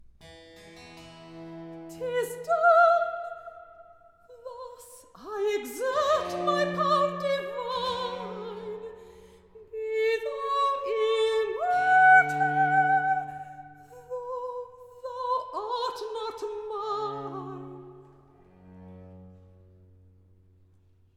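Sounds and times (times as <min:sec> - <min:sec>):
recitative singing: 0:01.8 - 0:03.7, 0:04.3 - 0:18.0.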